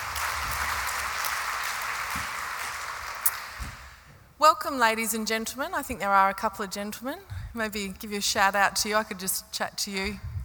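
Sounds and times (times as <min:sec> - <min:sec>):
audience applause thanking someone for a welcome speech at an evening event: 0:00.0 - 0:04.0
speech: 0:04.4 - 0:10.4.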